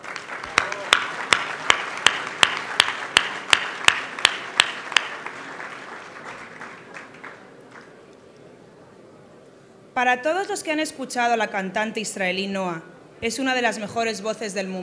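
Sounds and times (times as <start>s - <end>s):
audience rhythmic unison clapping thanking donors to the Centro Ibn Gabirol: 0.0s - 8.0s
crowd murmur: 0.3s - 9.7s
speech: 10.0s - 14.8s.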